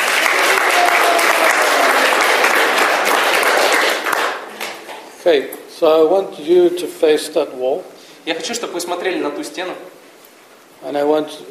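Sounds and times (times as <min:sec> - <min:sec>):
audience applause: 0:00.0 - 0:05.1
speech: 0:05.2 - 0:10.0, 0:10.8 - 0:11.5.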